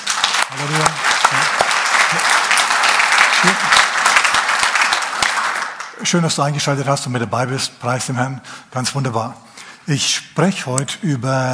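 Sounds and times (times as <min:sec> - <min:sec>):
audience clapping: 0:00.0 - 0:06.2
speech: 0:06.0 - 0:11.5.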